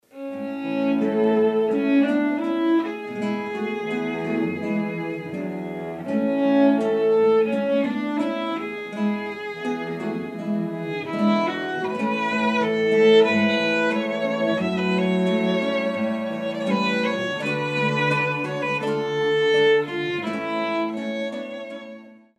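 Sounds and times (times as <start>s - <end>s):
guitar trio playing: 0.0s - 22.2s.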